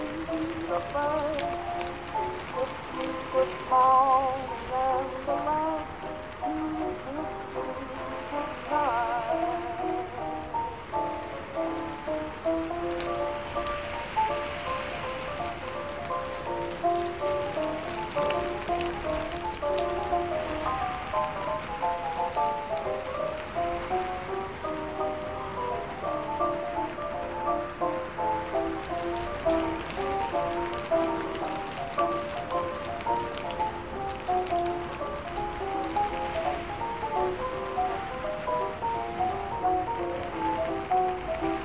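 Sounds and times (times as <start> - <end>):
oldies music playing in another room: 0.0 - 41.6
rain pattering: 0.0 - 41.6.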